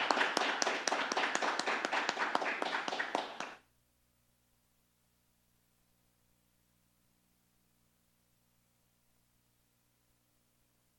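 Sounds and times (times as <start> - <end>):
crowd applauding for the honoree: 0.0 - 3.6.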